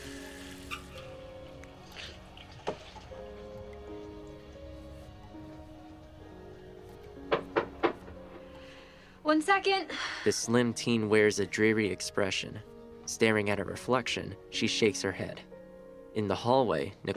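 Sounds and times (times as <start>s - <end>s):
water splashed on face: 0.0s - 4.7s
faucet running: 0.0s - 5.5s
speech: 9.3s - 15.5s, 16.2s - 17.1s.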